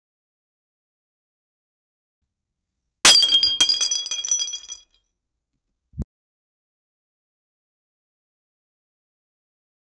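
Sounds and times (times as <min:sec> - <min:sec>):
glass smashing: 0:03.1 - 0:04.8.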